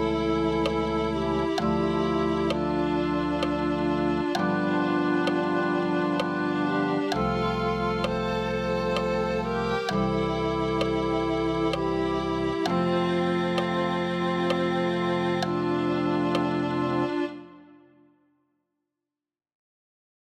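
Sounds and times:
violin playing: 0.0s - 18.1s.

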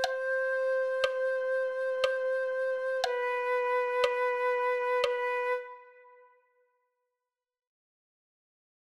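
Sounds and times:
flute: 0.0s - 6.8s.

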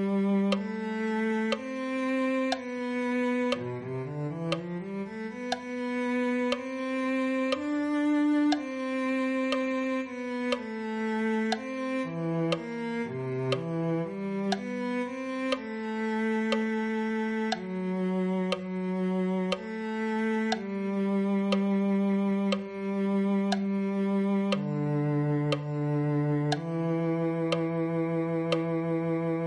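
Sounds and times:
cello: 0.0s - 29.4s.

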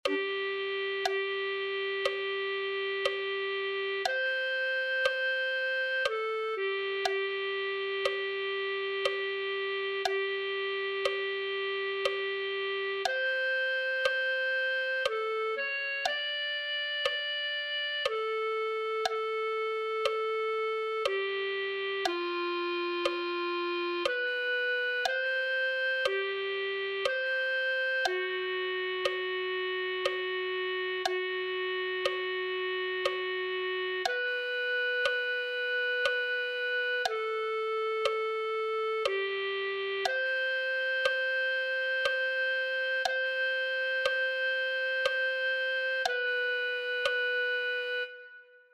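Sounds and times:
clarinet: 0.0s - 48.7s.

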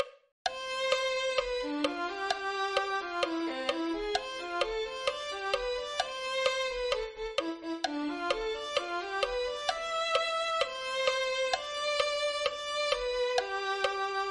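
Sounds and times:
violin: 0.0s - 14.2s.

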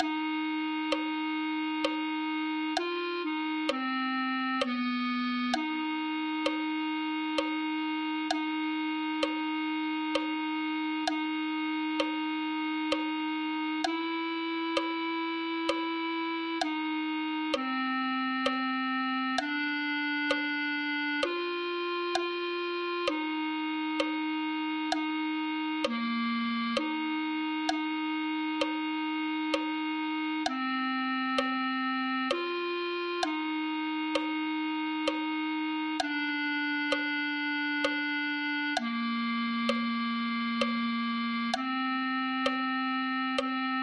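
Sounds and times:
clarinet: 0.0s - 43.8s.

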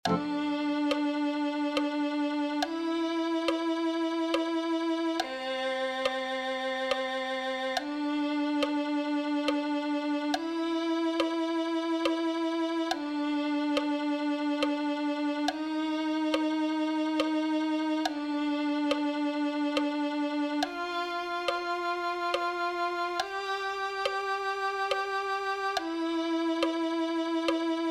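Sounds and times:
clarinet: 0.0s - 27.8s.

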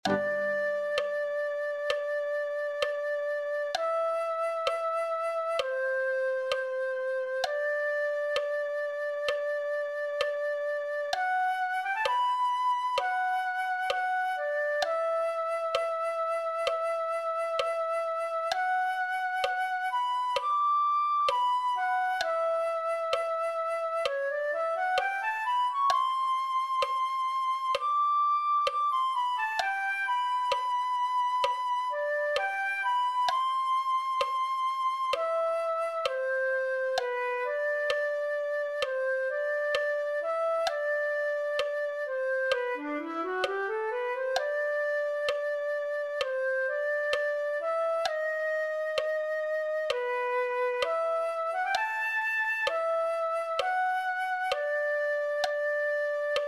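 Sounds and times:
flute: 0.0s - 56.4s.

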